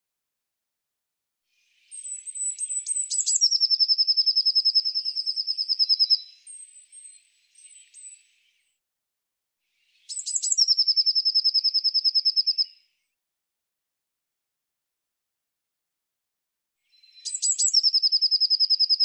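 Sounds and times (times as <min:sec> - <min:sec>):
bird song: 0:01.5 - 0:08.8, 0:09.6 - 0:13.2, 0:16.8 - 0:19.0.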